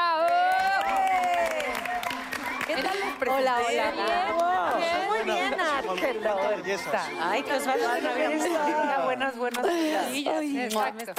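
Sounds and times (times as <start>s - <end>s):
audience applause: 0.0s - 6.2s
laughter: 2.4s - 10.3s
speech: 2.8s - 11.1s.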